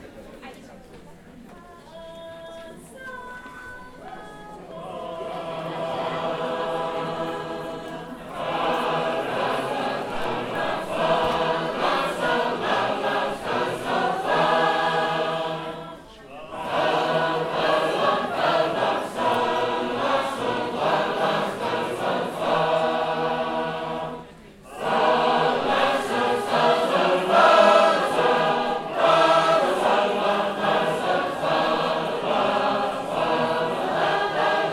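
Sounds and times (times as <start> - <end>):
Sacred Harp shape-note choir singing: 4.6 - 34.7.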